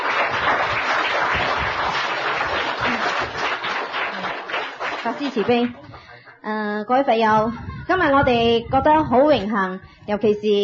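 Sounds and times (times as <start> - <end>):
audience applause: 0.0 - 6.4
speech: 5.0 - 10.6.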